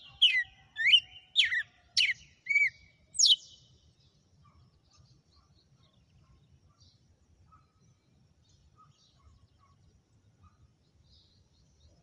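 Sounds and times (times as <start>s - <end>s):
female red-cowled cardinal whistled song: 0.2s - 3.6s.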